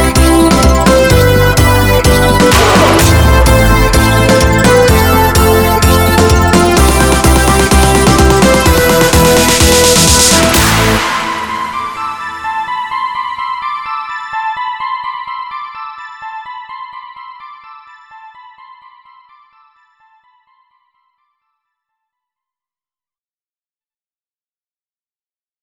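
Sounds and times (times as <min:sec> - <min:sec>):
divine trance music: 0:00.0 - 0:19.7.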